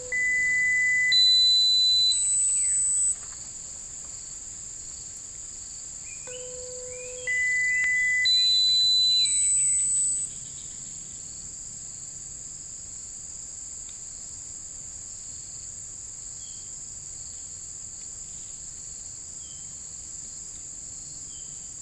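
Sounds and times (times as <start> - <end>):
birds: 0.1 - 3.2, 6.1 - 11.3.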